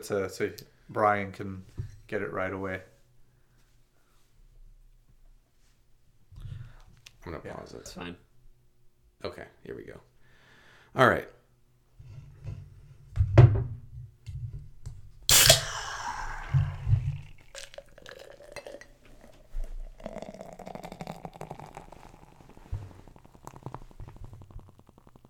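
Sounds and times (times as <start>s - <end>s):
speech: 0.0s - 2.9s, 7.2s - 8.2s, 9.2s - 10.1s, 10.9s - 11.4s
soda poured hard into a glass: 15.3s - 25.2s.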